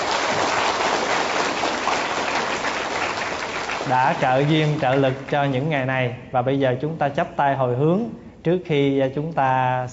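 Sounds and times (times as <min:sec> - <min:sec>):
applause from an assembly of Buddhist followers honouring the organisers: 0:00.0 - 0:05.4
speech: 0:03.9 - 0:09.9.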